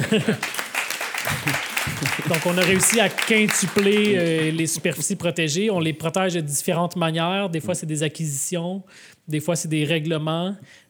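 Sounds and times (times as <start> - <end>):
person laughing: 0.0 - 0.6, 1.3 - 2.8
speech: 0.0 - 0.6, 1.2 - 10.8
audience applause: 0.0 - 5.1.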